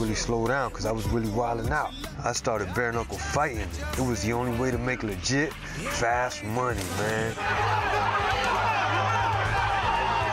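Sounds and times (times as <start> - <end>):
speech: 0.1 - 8.7
crowd at the Hard Rock Casino chanting: 6.8 - 10.3.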